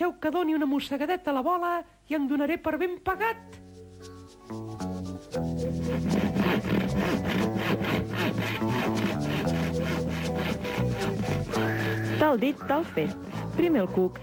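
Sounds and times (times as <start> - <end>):
speech: 0.0 - 9.0, 12.2 - 14.2
saw cutting through a ball: 5.8 - 13.8.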